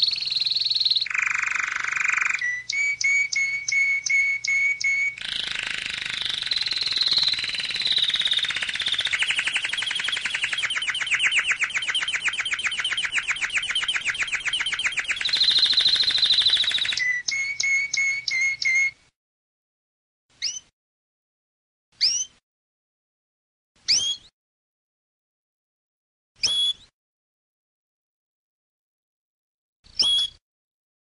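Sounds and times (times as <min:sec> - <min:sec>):
canary singing: 0:00.0 - 0:19.0, 0:20.4 - 0:20.7, 0:22.0 - 0:22.4, 0:23.9 - 0:24.3, 0:29.9 - 0:30.4.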